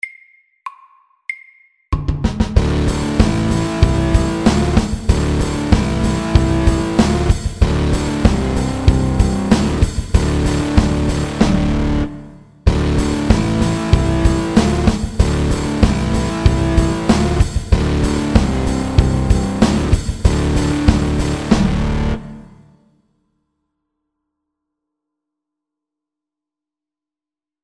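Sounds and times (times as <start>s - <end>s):
mountain rock music: 2.4s - 22.7s.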